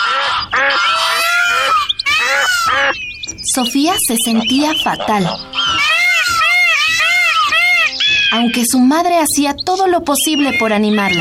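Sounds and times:
crowd of birds squabbling with honking squawks: 0:00.0 - 0:11.1
speech: 0:03.6 - 0:05.5, 0:08.3 - 0:11.1.

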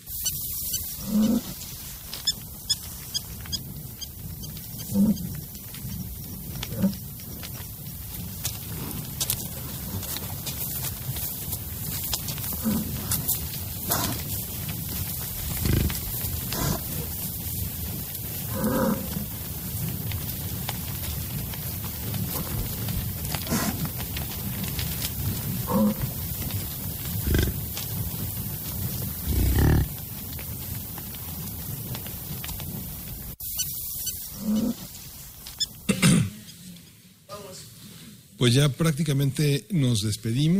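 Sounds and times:
steady hiss: 0:00.0 - 0:40.5
American bison grunting and bellowing in the wild: 0:00.4 - 0:17.4, 0:18.3 - 0:20.0, 0:22.0 - 0:24.0, 0:25.1 - 0:26.4, 0:27.0 - 0:27.8, 0:29.2 - 0:30.0
speech: 0:38.4 - 0:40.5.

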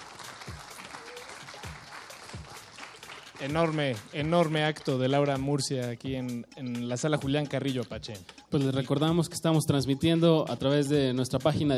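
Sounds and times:
audience applause: 0:00.0 - 0:04.5
speech: 0:03.4 - 0:11.7.

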